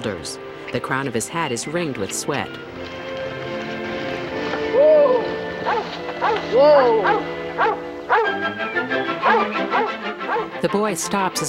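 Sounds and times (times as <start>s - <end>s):
speech: 0.0s - 3.0s, 6.3s - 11.4s
dog whining: 4.7s - 8.4s, 9.2s - 10.5s
yellow dog barking while chasing a rabbit near a cornfield: 5.7s - 8.3s, 9.2s - 10.5s.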